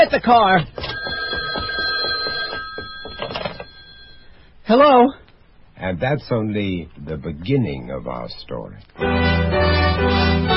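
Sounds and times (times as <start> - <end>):
speech: 0.0 - 0.8, 4.7 - 5.2, 5.8 - 10.5
old-style telephone bell ringing: 0.8 - 4.4.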